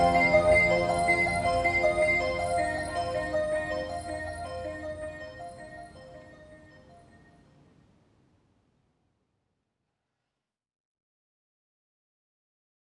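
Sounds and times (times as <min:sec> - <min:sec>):
laptop music: 0:00.0 - 0:06.8.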